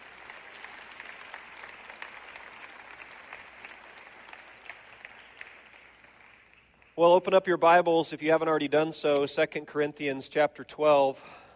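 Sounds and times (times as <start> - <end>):
audience applause: 0.0 - 7.0
speech: 7.0 - 11.4.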